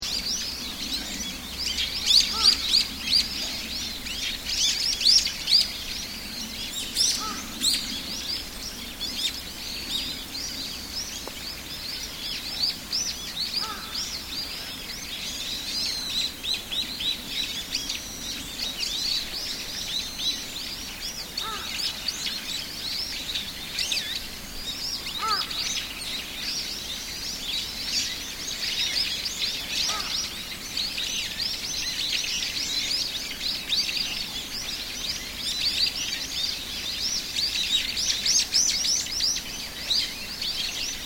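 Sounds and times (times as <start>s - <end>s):
Japanese birds singing: 0.0s - 41.0s
crows in temple area in Sannohe in spring: 2.3s - 2.8s, 7.2s - 7.6s, 13.6s - 14.0s, 21.4s - 22.0s, 25.2s - 25.7s, 29.8s - 30.3s.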